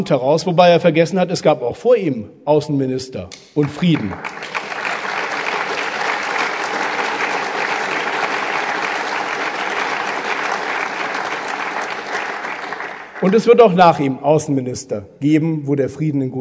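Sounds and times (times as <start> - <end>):
speech: 0.0 - 4.7, 13.2 - 16.3
audience applause: 3.7 - 13.6.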